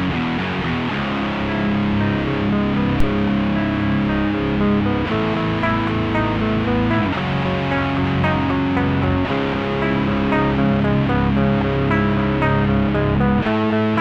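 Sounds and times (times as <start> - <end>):
rock guitar in surround 3D sound: 0.0 - 14.0.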